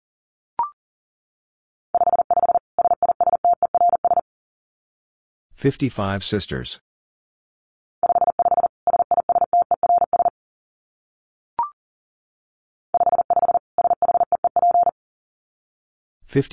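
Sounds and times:
Morse code beeps at about 40 words per minute: 0:02.0 - 0:04.2, 0:08.0 - 0:10.3, 0:13.0 - 0:14.9
speech: 0:05.6 - 0:06.9, 0:16.4 - 0:16.5.

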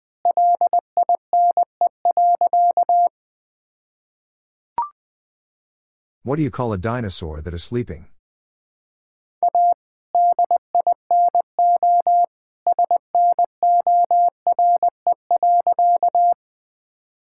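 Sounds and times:
Morse code tones at 20 wpm: 0:00.3 - 0:03.1, 0:09.4 - 0:16.4
speech: 0:06.2 - 0:08.1.

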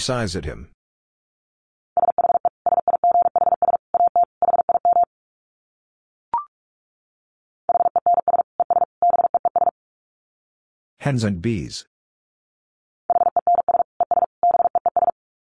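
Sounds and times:
speech: 0:00.0 - 0:00.8, 0:11.0 - 0:11.9
Morse code tones at 45 words per minute: 0:02.0 - 0:05.1, 0:07.7 - 0:09.7, 0:13.1 - 0:15.2.

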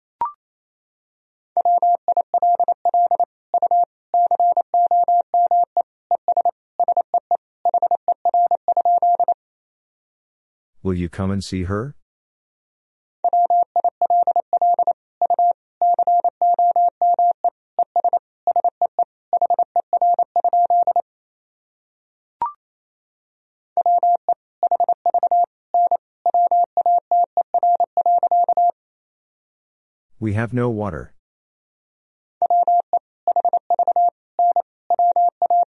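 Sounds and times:
Morse code tones at 28 wpm: 0:01.6 - 0:07.1, 0:07.7 - 0:09.4, 0:13.3 - 0:18.7, 0:19.4 - 0:21.0, 0:23.8 - 0:28.8, 0:32.4 - 0:35.6
speech: 0:10.8 - 0:12.0, 0:30.2 - 0:31.2.

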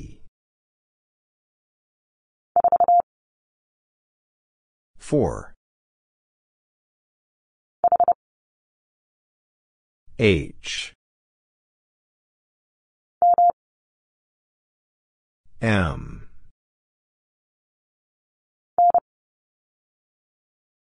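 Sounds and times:
morse code letter M at 30 wpm: 0:02.6 - 0:03.1, 0:07.9 - 0:08.2, 0:13.2 - 0:13.5, 0:18.8 - 0:19.0.

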